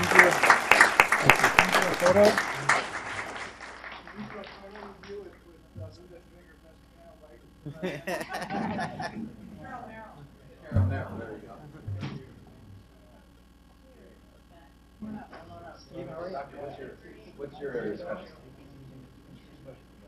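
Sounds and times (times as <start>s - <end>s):
audience applause: 0.0s - 5.2s
laughter: 7.6s - 9.4s.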